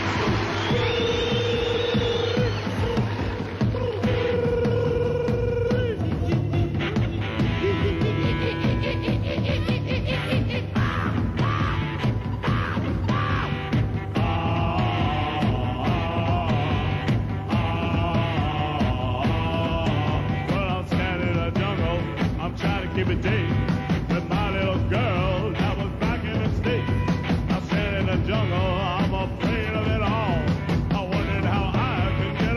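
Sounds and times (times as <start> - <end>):
laughter: 0.0 - 13.7
driving distorted guitars: 0.0 - 32.5
pounding drums: 0.0 - 32.5
shouted, sneering male vocal: 0.0 - 32.5.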